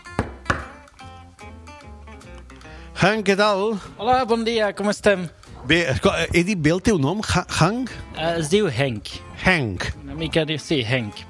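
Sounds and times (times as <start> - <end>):
knocking on a closed shop door: 0.1 - 0.8
speech: 3.0 - 11.2.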